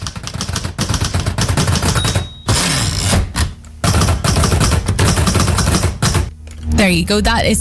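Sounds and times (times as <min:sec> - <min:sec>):
typing on an old-fashioned machine: 0:00.0 - 0:02.7, 0:03.9 - 0:06.3
speech: 0:06.9 - 0:07.6.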